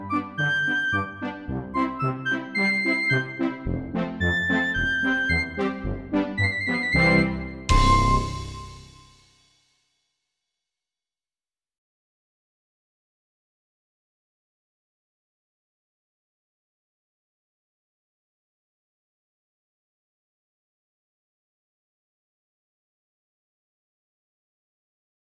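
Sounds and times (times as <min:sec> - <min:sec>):
instrumental music: 0:00.0 - 0:09.5.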